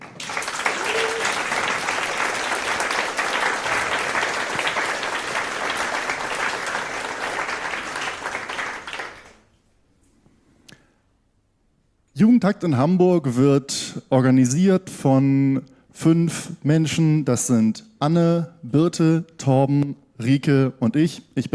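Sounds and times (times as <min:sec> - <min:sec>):
audience applause: 0:00.0 - 0:09.5
speech: 0:12.2 - 0:21.5.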